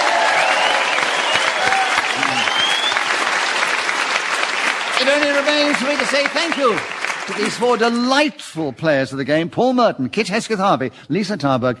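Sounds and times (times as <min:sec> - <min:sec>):
audience applause for the winner: 0:00.0 - 0:08.1
speech: 0:05.4 - 0:11.7.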